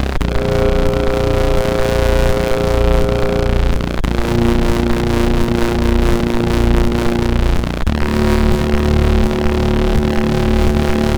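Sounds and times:
chiptune music on a SID chip: 0:00.2 - 0:11.1.

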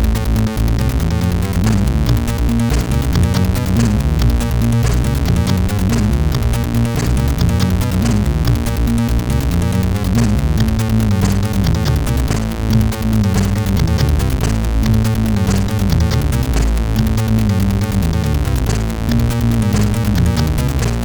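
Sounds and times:
hip hop music on MOS6581R4 sound chip: 0:00.0 - 0:21.0.

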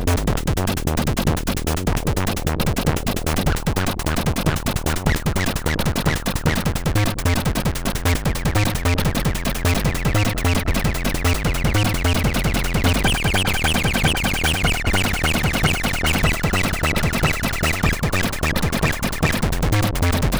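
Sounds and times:
303 emulator synthesizer on MOS6581R3 sound chip: 0:00.0 - 0:20.3.

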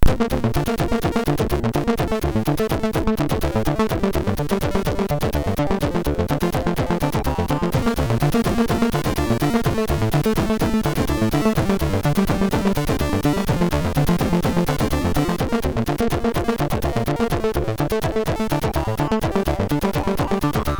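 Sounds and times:
SID 6581R3 chiptune synth sound: 0:00.0 - 0:20.7.

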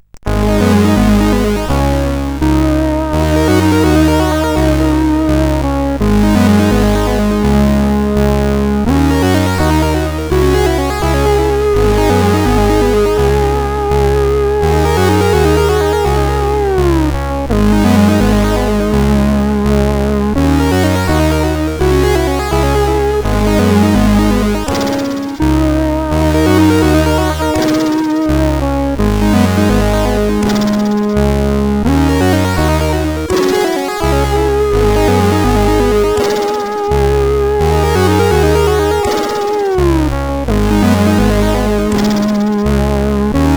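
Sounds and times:
soft SID chip music on CSG8580R5: 0:00.0 - 0:43.5.

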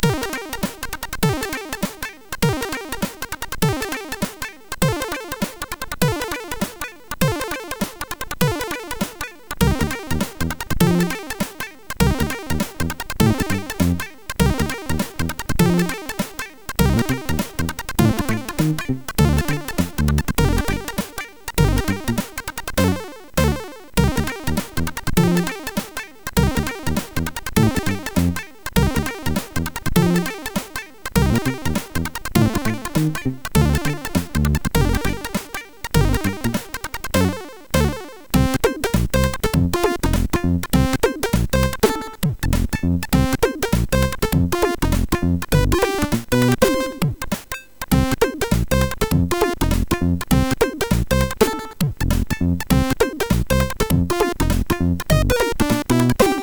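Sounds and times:
MOS6581R4 SID chip music: 0:00.0 - 0:56.4.

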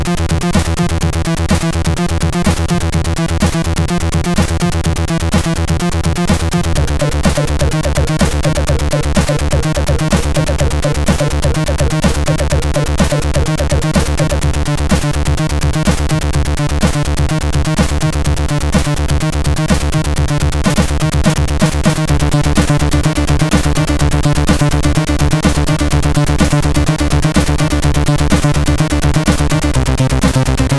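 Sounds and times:
acid synth on SID 8580R5 chip: 0:00.0 - 0:30.7.

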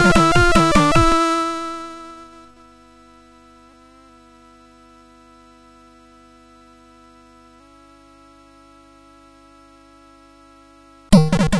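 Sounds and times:
medieval song on SID MOS6581R2 chip: 0:00.0 - 0:02.4, 0:11.1 - 0:11.5.

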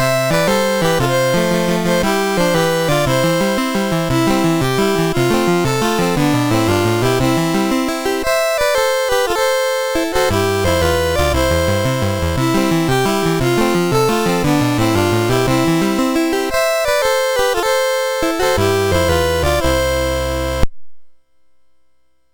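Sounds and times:
folk tune on a MOS6581R3 sound chip: 0:00.0 - 0:20.7.

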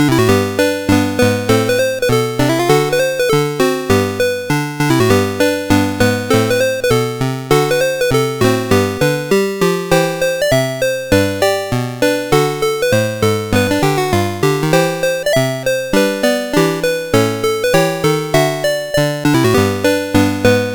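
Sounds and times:
SID CSG8580R5 chip game music: 0:00.0 - 0:20.7.

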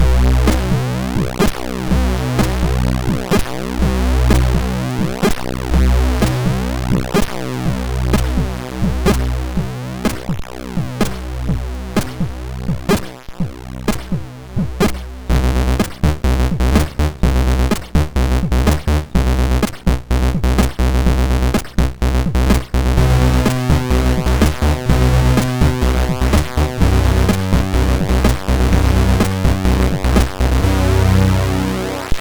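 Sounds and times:
quickstep chiptune music on MOS6581R2 SID chip: 0:00.0 - 0:32.1.

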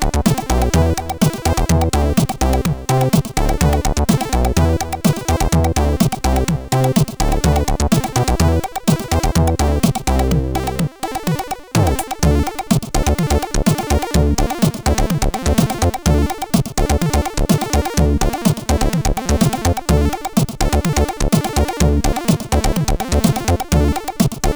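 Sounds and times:
Covox CSG8580R5 sound chip: 0:00.0 - 0:24.5.

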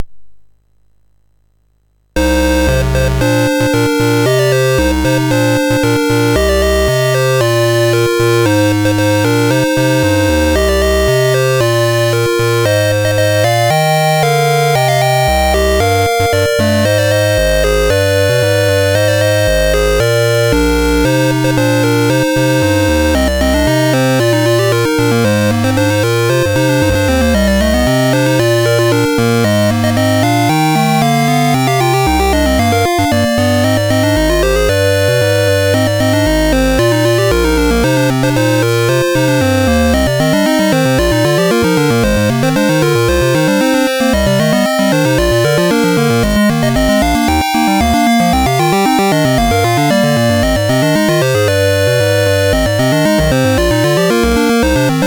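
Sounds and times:
SID MOS6581R4 chiptune music: 0:02.2 - 0:55.0.

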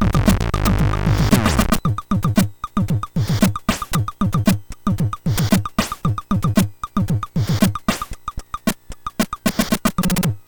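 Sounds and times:
SID MOS6581R3 chip intro music: 0:00.0 - 0:10.3.

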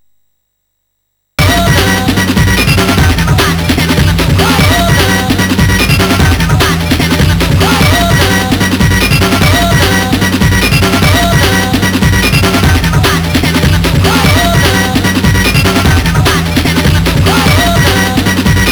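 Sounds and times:
chiptune intro music on MOS6581R4 SID chip: 0:01.4 - 0:18.7.

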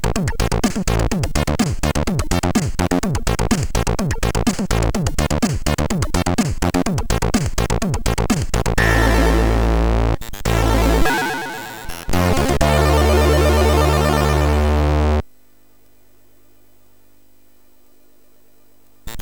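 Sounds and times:
classic mix chiptune music on MOS6581R3 SID chip: 0:00.0 - 0:15.2.

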